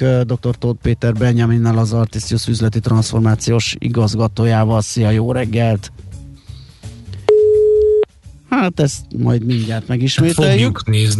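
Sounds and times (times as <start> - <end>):
speech: 0.0 - 6.1, 8.5 - 11.1
low noise: 0.0 - 11.1
telephone busy signal: 7.3 - 8.1.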